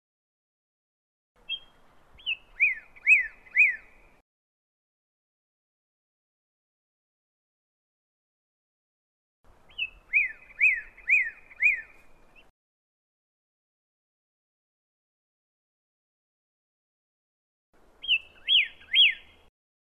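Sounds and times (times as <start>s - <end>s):
pyrrhuloxia chirping: 1.5s - 4.2s, 9.7s - 12.5s, 18.0s - 19.5s.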